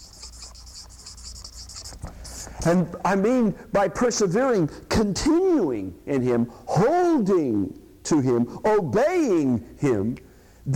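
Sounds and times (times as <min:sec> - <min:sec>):
pen strokes writing a word by hand: 0:00.0 - 0:02.6
speech: 0:02.6 - 0:10.7.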